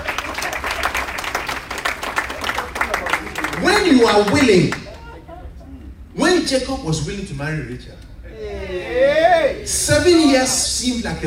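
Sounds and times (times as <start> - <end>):
audience clapping: 0.0 - 5.0
speech: 3.9 - 4.8, 6.5 - 8.1, 9.0 - 11.2.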